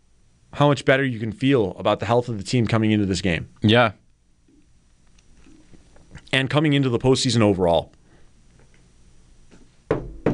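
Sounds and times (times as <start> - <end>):
speech: 0.6 - 4.0, 6.3 - 8.0
knocking on wood: 9.9 - 10.3.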